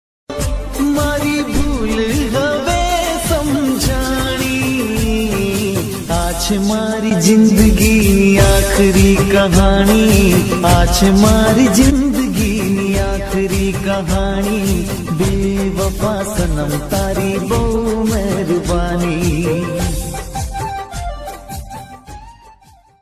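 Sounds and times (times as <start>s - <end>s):
Gujarati sad song: 0.3s - 22.8s.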